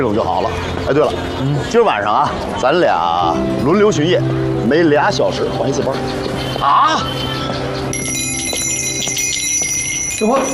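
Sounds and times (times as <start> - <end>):
speech: 0.0 - 8.1, 10.2 - 10.5
wind chime ringing: 6.4 - 10.5.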